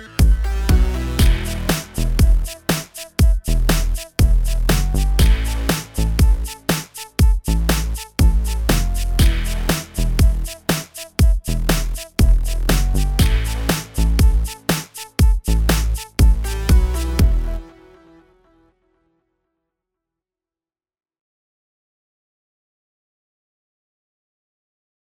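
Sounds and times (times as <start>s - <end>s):
groove pattern: 0.0s - 17.6s.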